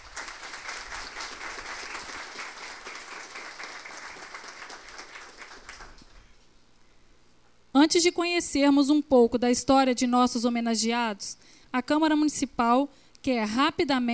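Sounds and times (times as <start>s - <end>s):
round of applause: 0.0s - 6.3s
speech: 7.8s - 14.1s.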